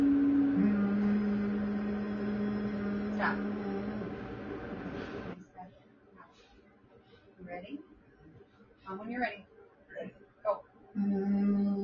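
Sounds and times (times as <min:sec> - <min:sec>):
person humming a breathing exercise: 0:00.0 - 0:05.4, 0:11.0 - 0:11.8
speech: 0:03.2 - 0:03.5.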